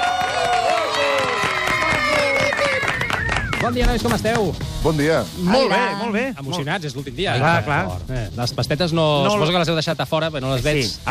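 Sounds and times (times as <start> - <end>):
applause and cheering: 0.0 - 4.6
speech: 3.7 - 11.0.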